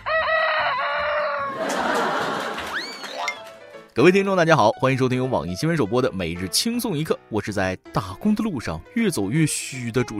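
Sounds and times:
rooster crowing: 0:00.0 - 0:01.7
laughter: 0:01.4 - 0:03.2
speech: 0:04.0 - 0:10.1.

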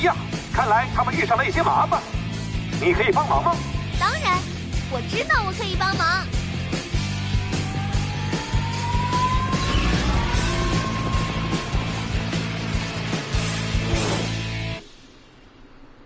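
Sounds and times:
speech: 0:00.0 - 0:06.4
whining tone rising in pitch: 0:07.2 - 0:16.0
helicopter flying: 0:07.6 - 0:13.8.

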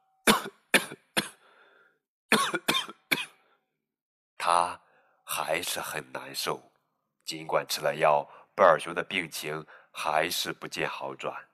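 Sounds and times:
coughing: 0:00.2 - 0:01.4, 0:02.3 - 0:03.4
speech: 0:05.4 - 0:06.7, 0:07.3 - 0:11.5.

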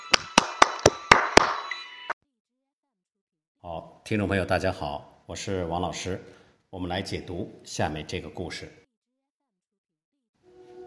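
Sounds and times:
audience applause: 0:00.0 - 0:01.6
speech: 0:04.1 - 0:08.8.

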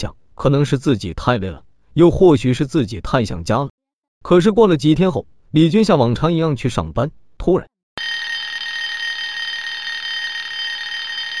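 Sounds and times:
speech: 0:00.0 - 0:07.7
mobile phone ringing: 0:08.0 - 0:11.3.

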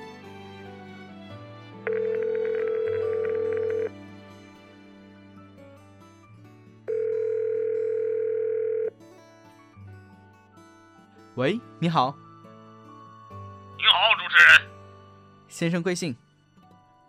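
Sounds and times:
telephone dial tone, call connecting: 0:01.9 - 0:03.9, 0:06.9 - 0:08.9
speech: 0:11.4 - 0:12.2, 0:15.6 - 0:16.2.

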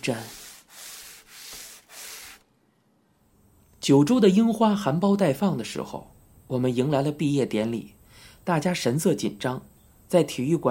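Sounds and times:
speech: 0:00.0 - 0:00.4, 0:03.9 - 0:10.6
wet brush scrubbing: 0:00.0 - 0:02.5.

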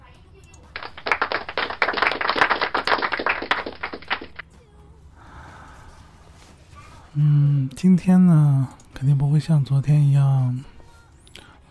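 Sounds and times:
clapping: 0:00.7 - 0:04.4
speech: 0:07.2 - 0:10.7.

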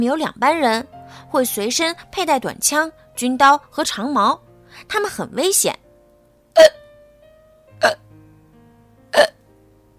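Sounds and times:
speech: 0:00.0 - 0:05.8, 0:06.6 - 0:06.8, 0:07.8 - 0:08.0
hiccups: 0:06.6 - 0:06.8, 0:07.8 - 0:08.0, 0:09.1 - 0:09.4.

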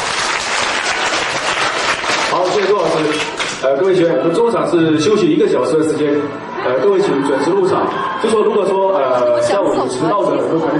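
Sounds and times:
audience applause: 0:00.0 - 0:04.1
speech: 0:02.4 - 0:10.7.

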